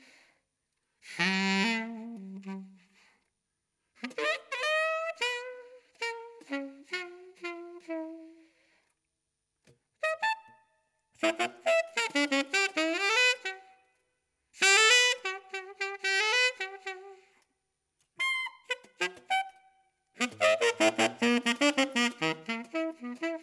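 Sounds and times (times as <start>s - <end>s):
saxophone solo: 1.0s - 3.1s, 4.0s - 8.7s, 10.0s - 10.6s, 11.2s - 13.9s, 14.6s - 17.5s, 18.1s - 23.4s.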